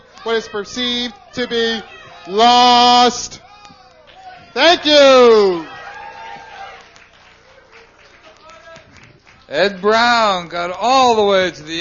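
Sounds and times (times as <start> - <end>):
speech: 0.2 - 3.4, 4.6 - 5.7, 9.5 - 11.7
audience applause: 5.4 - 10.4.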